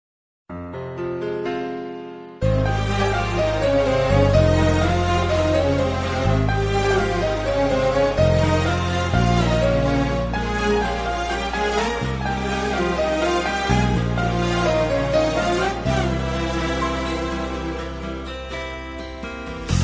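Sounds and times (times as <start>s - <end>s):
Arab music: 2.5s - 18.9s.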